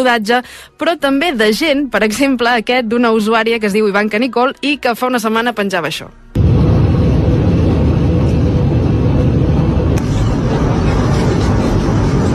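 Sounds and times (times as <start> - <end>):
speech: 0.0 - 6.2
airplane cabin engine and airflow roar in flight over the Andes: 6.4 - 12.3.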